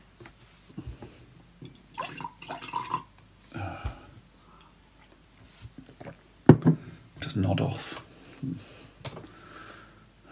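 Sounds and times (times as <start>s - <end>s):
drink pouring into a glass: 1.6s - 3.1s
speech: 7.4s - 8.8s.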